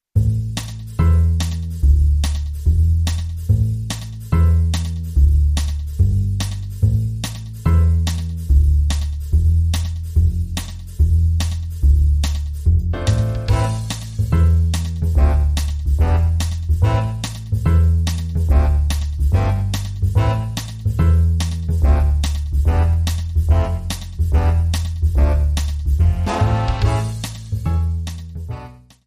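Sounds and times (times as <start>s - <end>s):
big band swing: 0.2s - 29.0s.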